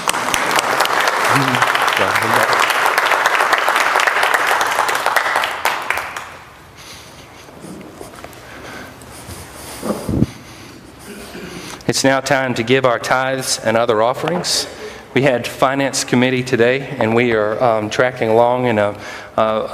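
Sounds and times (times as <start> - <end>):
audience applause: 0.0 - 6.6
speech: 1.4 - 2.6, 12.0 - 19.7.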